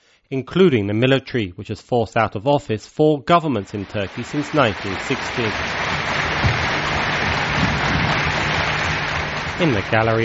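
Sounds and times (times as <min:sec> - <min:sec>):
speech: 0:00.3 - 0:06.2, 0:09.6 - 0:10.2
parliament crowd clapping: 0:03.6 - 0:10.2.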